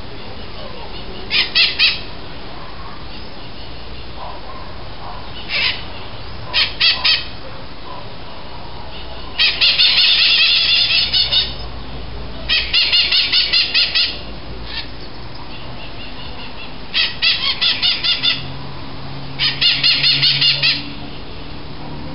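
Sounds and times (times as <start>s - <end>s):
harsh bird calls: 0.0s - 2.2s, 5.0s - 7.4s, 8.9s - 18.6s, 19.4s - 21.0s.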